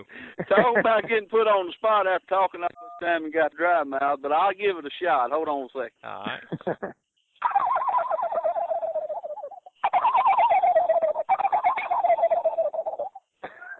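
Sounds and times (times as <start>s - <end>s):
laughter: 0.0s - 1.3s, 6.3s - 6.9s, 13.4s - 13.7s
speech: 0.0s - 7.6s
person imitating a turkey gobble: 7.4s - 13.7s.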